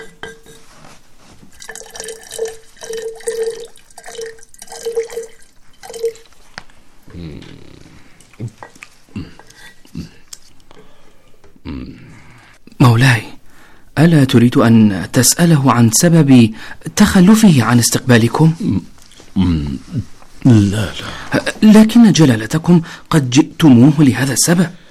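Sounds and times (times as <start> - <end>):
faint irregular knocks and rustles: 0.0 - 1.8
milk being poured out for drinking: 1.5 - 6.4
speech: 14.0 - 24.8.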